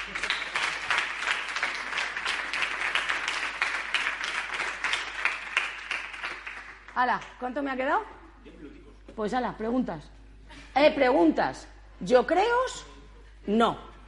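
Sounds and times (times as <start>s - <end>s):
audience applause: 0.0s - 7.0s
speech: 7.0s - 10.2s, 10.8s - 12.9s, 13.5s - 13.9s.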